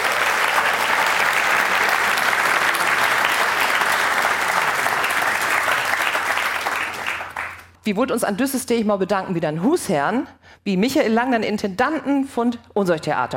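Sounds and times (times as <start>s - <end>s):
audience applause in a hall: 0.0s - 7.7s
speech: 7.9s - 13.3s.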